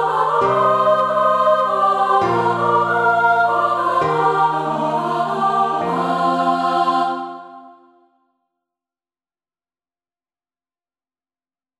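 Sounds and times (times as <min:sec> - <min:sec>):
choir singing: 0:00.0 - 0:08.1.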